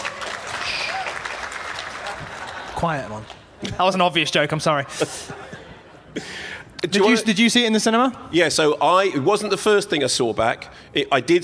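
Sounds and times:
audience round of applause at a live talk about films: 0.0 - 3.5
speech: 2.8 - 5.5, 6.1 - 11.4.

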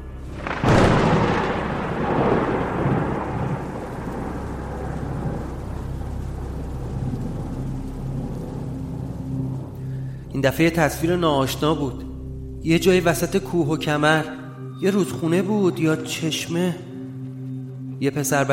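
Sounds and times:
loud thunderclap: 0.0 - 9.8
steady rain: 0.0 - 14.0
speech: 10.4 - 16.9, 18.0 - 18.5.

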